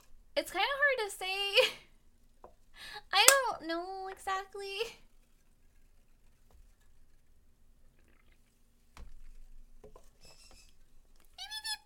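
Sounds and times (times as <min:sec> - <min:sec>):
speech: 0:00.5 - 0:01.8, 0:03.2 - 0:05.0
pet bird calling: 0:11.3 - 0:11.8.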